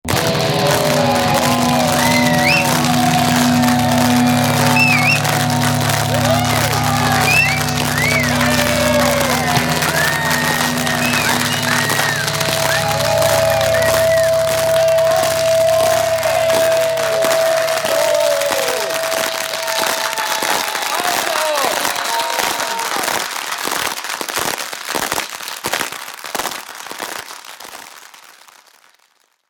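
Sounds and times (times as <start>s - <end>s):
electric guitar noise: 0.0s - 21.2s
crowd shouting for an encore: 0.0s - 23.6s
crowd applauding: 0.0s - 28.6s.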